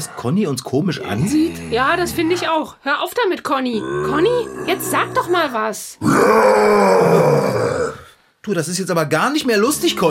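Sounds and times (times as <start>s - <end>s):
speech: 0.0s - 10.0s
person growling like a bear: 1.0s - 2.6s, 3.8s - 8.1s.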